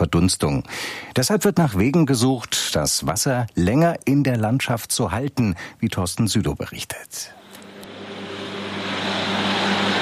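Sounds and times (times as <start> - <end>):
speech: 0.0 - 7.4
tractor with extra wide rear tyres mowing tall grass on moor meadows: 7.6 - 10.0.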